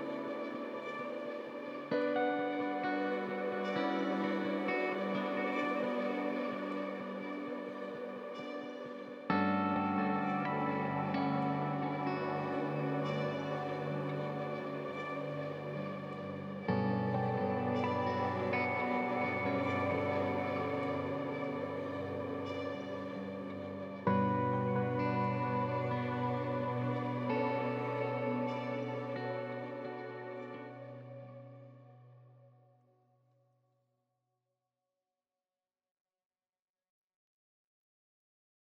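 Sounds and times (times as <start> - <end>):
strings in the mid register: 0.0 - 31.6.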